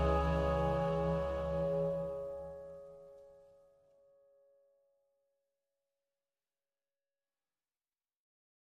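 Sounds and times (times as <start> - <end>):
clarinet and violin melody: 0.0 - 3.2.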